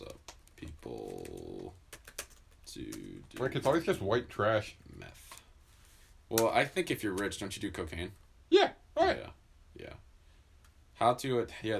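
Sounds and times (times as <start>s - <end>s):
computer keyboard keys clicking as someone types a Google search: 0.0s - 3.8s
speech: 2.8s - 4.8s, 6.3s - 9.2s, 11.0s - 11.7s.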